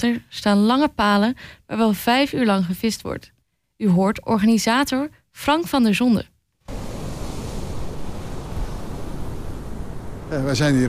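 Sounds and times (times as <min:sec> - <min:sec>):
speech: 0:00.0 - 0:06.8, 0:10.3 - 0:10.8
surf washing onto a beach: 0:06.7 - 0:10.8
wind buffeting the microphone: 0:06.7 - 0:10.8.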